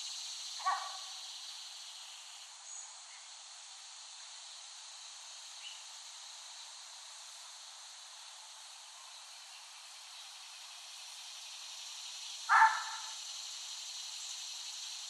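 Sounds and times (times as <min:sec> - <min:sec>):
cicadas droning: 0:00.0 - 0:15.0.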